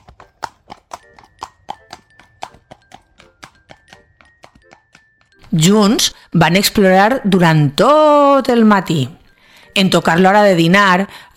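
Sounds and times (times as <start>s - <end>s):
donkey hooves clip-clopping in a walking rhythm: 0.0s - 6.2s
speech: 5.5s - 9.2s, 9.8s - 11.3s.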